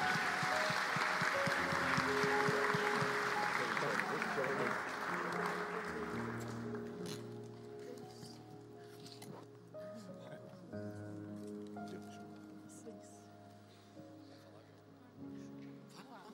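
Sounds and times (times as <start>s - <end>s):
organ or keyboard tones: 0.0s - 6.9s
audience applauding: 0.0s - 7.4s.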